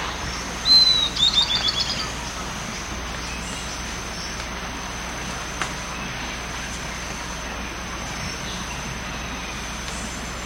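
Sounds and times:
steady background hiss: 0.0 - 10.4
bird call with thin high whistle and short notes: 0.6 - 2.2.

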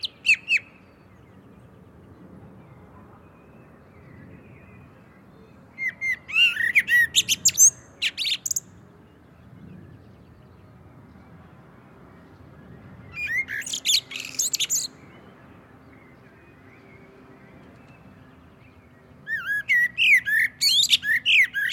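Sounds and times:
Common blackbird Turdus merula whistling and twittering: 0.0 - 1.0, 5.8 - 8.6, 13.1 - 15.0, 19.2 - 21.7.

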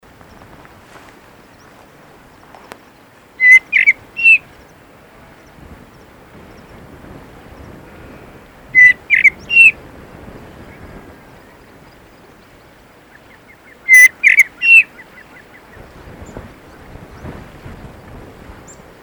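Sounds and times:
background hiss: 0.0 - 19.0
common blackbird harsh calls: 2.7 - 4.8, 7.9 - 9.8, 10.7 - 16.4.

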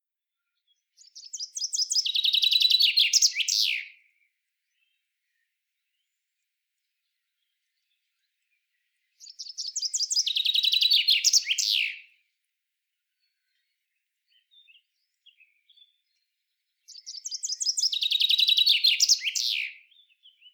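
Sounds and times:
common chaffinch Fringilla coelebs song: 1.0 - 4.0, 7.2 - 12.0, 13.2 - 20.5.

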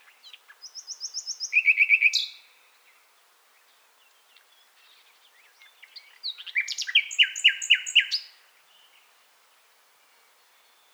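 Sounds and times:
common nightingale Luscinia megarhynchos song: 0.0 - 3.0, 3.6 - 9.1.

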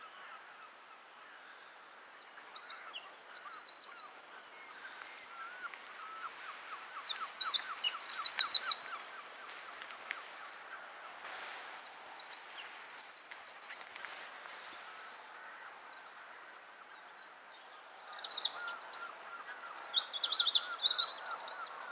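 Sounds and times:
Eurasian wren song: 2.3 - 10.9, 11.6 - 16.4, 18.0 - 21.9.

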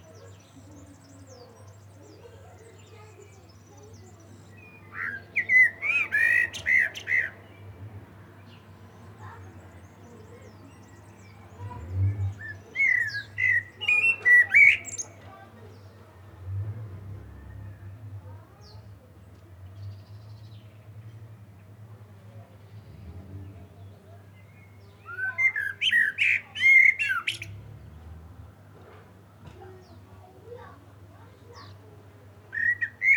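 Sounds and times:
common blackbird singing: 0.0 - 7.7, 9.2 - 16.0, 23.8 - 28.0, 32.5 - 33.1.

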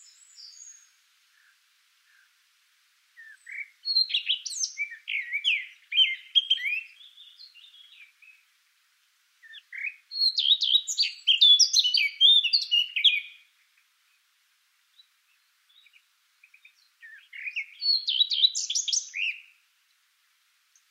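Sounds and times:
Eurasian blackcap Sylvia atricapilla singing: 3.2 - 8.4, 9.4 - 13.5, 15.0 - 19.6.

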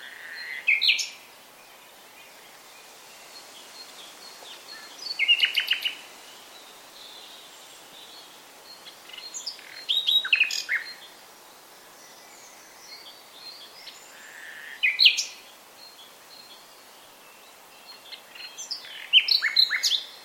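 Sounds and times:
common nightingale Luscinia megarhynchos singing: 0.0 - 20.2.

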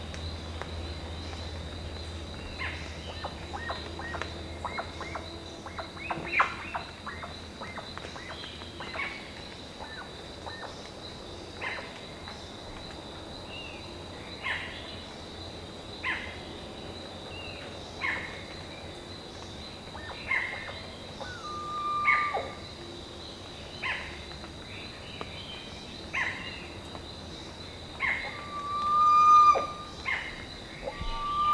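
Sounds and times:
background hiss: 0.0 - 31.5
bird calling: 2.5 - 9.2, 19.9 - 22.8, 27.9 - 31.5.

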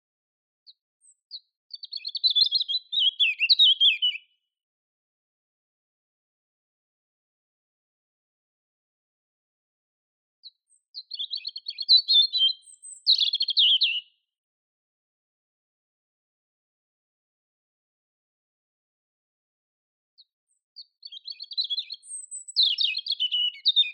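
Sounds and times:
European robin song: 0.6 - 4.5, 10.4 - 14.3, 20.2 - 23.9.

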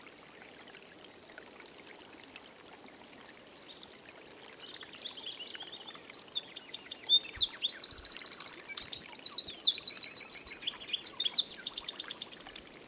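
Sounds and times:
Eurasian wren song: 5.9 - 12.4.

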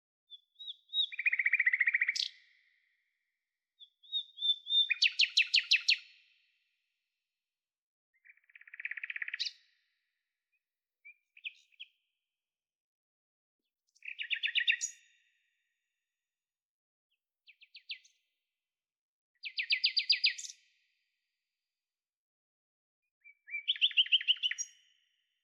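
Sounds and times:
common nightingale singing trills: 0.3 - 2.4, 3.8 - 6.1, 8.2 - 9.6, 11.1 - 11.9, 14.0 - 15.1, 19.4 - 20.6, 23.2 - 24.8.

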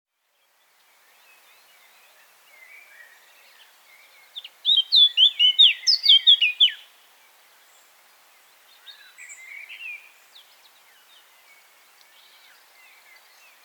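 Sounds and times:
Eurasian blackcap Sylvia atricapilla singing: 4.4 - 6.8.

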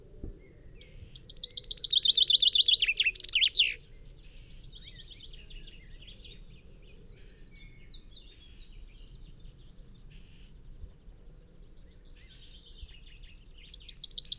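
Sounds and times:
common chaffinch (Fringilla coelebs) descending trilled song: 1.1 - 3.8.

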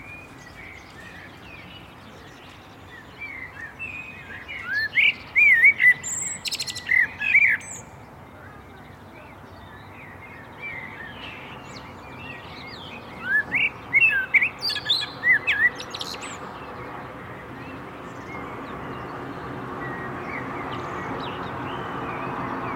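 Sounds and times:
common blackbird song: 0.0 - 22.7.

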